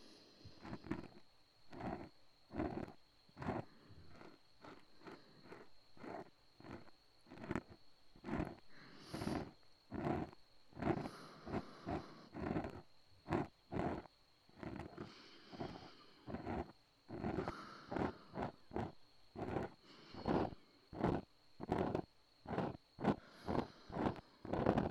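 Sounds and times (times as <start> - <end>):
breathing into the left ear: 0.0 - 1.0, 3.4 - 5.7, 8.3 - 12.8, 14.8 - 22.0, 22.6 - 24.9
ear cleaning: 0.0 - 24.9.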